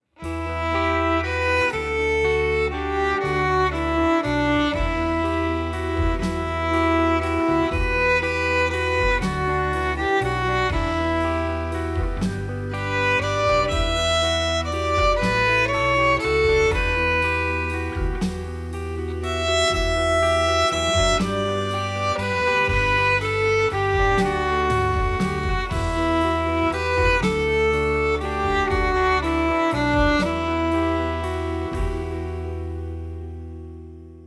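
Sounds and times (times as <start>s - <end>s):
violin: 0.0s - 33.6s.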